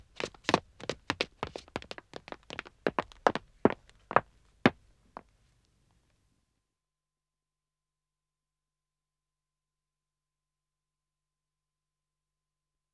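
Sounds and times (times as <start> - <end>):
two men running footsteps on dead acoustic wood: 0.0 - 5.2.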